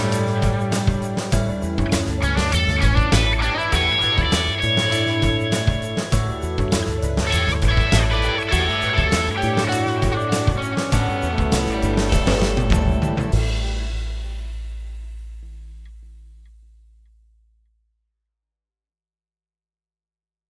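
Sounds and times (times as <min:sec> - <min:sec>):
tune in A: 0:00.0 - 0:15.4.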